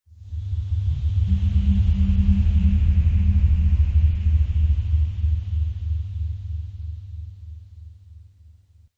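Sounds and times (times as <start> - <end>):
distant ghostly ectoplasm sound effect: 0.7 - 6.9.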